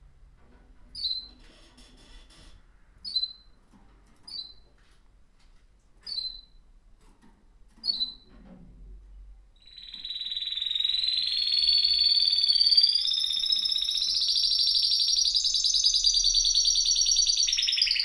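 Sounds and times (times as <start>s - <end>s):
caged canary singing: 1.0s - 1.4s, 4.3s - 4.6s, 6.0s - 6.6s, 7.8s - 8.3s, 9.6s - 18.0s.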